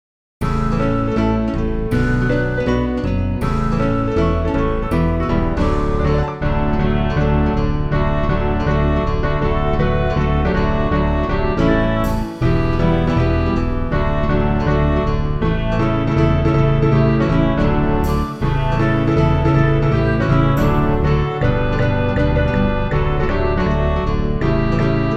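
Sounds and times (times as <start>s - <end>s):
instrumental music: 0.4s - 25.1s.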